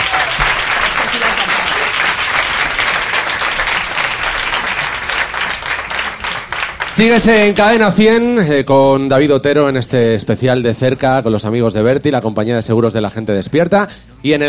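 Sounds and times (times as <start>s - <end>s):
audience applause: 0.0s - 7.8s
speech: 7.0s - 14.4s.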